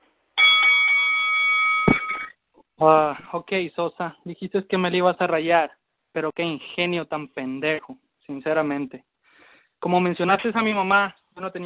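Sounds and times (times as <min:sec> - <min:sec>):
bell sound effect: 0:00.4 - 0:02.3
speech: 0:02.8 - 0:09.1, 0:09.8 - 0:11.6.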